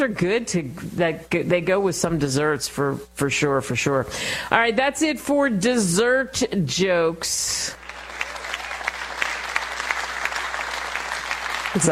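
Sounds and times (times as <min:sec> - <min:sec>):
speech: 0:00.0 - 0:07.8
audience applause: 0:07.8 - 0:11.8.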